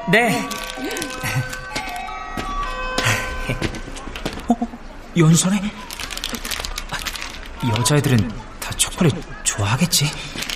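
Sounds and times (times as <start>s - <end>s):
school bell chime playing an electronic melody: 0.0s - 4.0s
speech: 0.1s - 1.5s, 5.2s - 5.8s, 7.6s - 10.4s.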